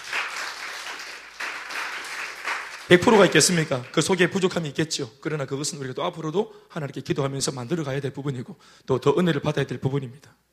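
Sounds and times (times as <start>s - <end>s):
audience applause: 0.0s - 4.2s
speech: 2.9s - 10.5s.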